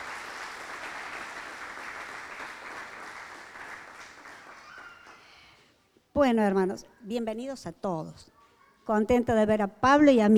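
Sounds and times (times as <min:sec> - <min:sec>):
audience applauding a first-time visitor: 0:00.0 - 0:05.4
speech: 0:06.2 - 0:10.3.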